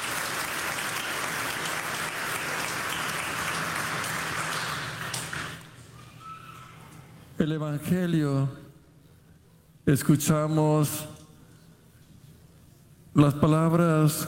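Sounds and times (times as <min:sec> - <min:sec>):
audience applause: 0:00.0 - 0:06.1
speech: 0:07.4 - 0:08.6, 0:09.9 - 0:11.1, 0:13.2 - 0:14.2.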